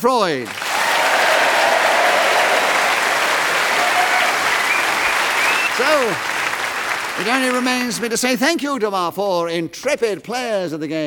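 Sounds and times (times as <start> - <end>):
speech: 0.0 - 0.6, 5.8 - 6.3, 7.2 - 11.0
round of applause: 0.3 - 8.4.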